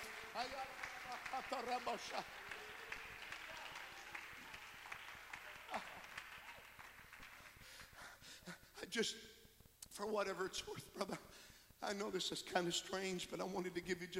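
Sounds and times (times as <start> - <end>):
audience clapping hands: 0.0 - 8.2
speech: 0.4 - 2.6, 8.9 - 9.4, 10.0 - 14.1.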